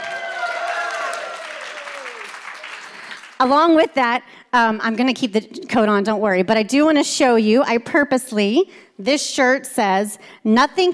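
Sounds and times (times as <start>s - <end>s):
people whooping and cheering: 0.0s - 3.1s
audience applause: 0.0s - 3.4s
speech: 3.4s - 10.9s.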